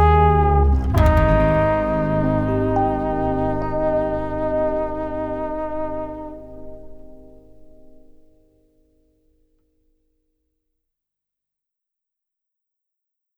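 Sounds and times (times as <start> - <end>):
trombone: 0.0 - 8.0.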